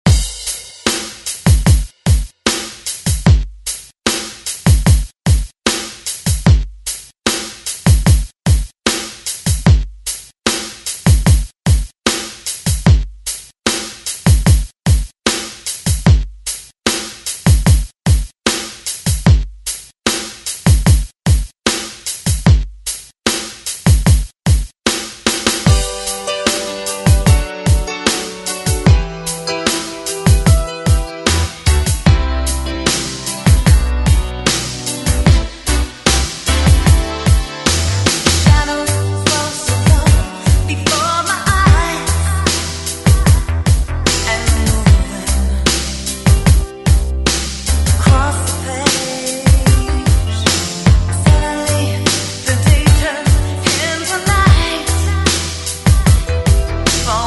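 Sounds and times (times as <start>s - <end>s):
80s drum beat: 0.0s - 45.2s, 46.1s - 51.6s, 52.5s - 57.2s.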